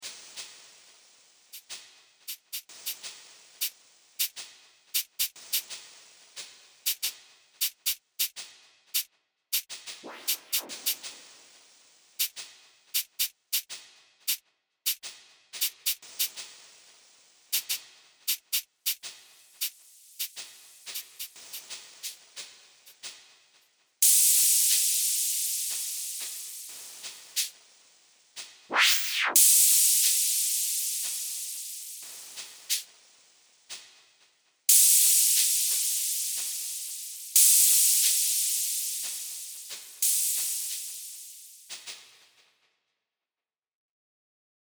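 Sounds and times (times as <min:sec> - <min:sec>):
percussion: 0:01.5 - 0:05.9, 0:06.8 - 0:11.5, 0:12.2 - 0:16.6, 0:17.5 - 0:23.2, 0:24.0 - 0:27.6, 0:28.7 - 0:32.9, 0:34.7 - 0:42.1.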